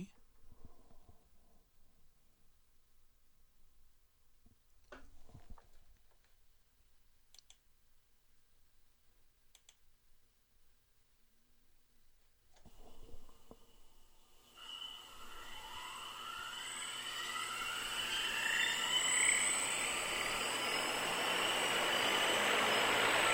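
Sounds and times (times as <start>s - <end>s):
helicopter rotor blades whirring in a vacuum tank: 16.0s - 23.3s.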